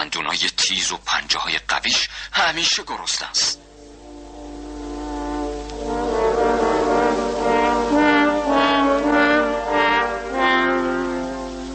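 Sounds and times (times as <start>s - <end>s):
speech: 0.0s - 3.7s
three horns playing a theme: 3.6s - 11.7s.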